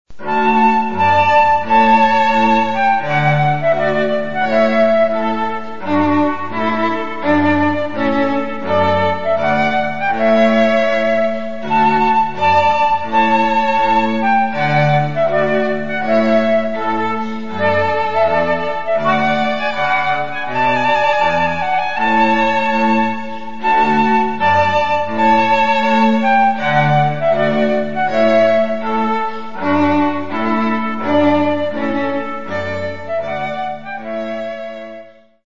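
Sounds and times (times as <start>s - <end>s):
trumpet piece: 0.1s - 35.0s.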